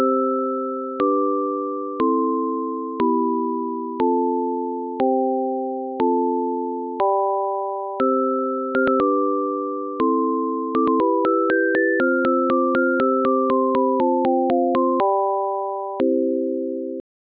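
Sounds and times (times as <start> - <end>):
canon pure frequency with chord: 0.0 - 17.0.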